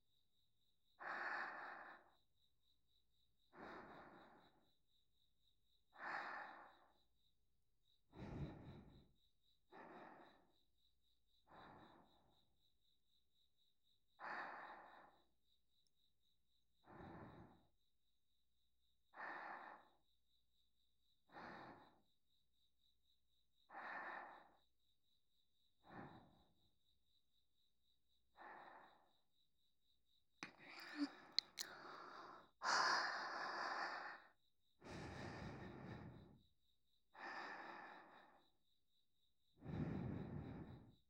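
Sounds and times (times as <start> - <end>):
sleep breathing on the right: 1.0 - 2.2, 3.4 - 4.6, 6.0 - 7.1, 8.1 - 10.6, 11.4 - 12.3, 14.2 - 15.3, 16.8 - 17.7, 19.1 - 20.0, 21.3 - 22.0, 23.7 - 24.6, 25.8 - 26.5, 30.4 - 38.6, 39.6 - 41.0.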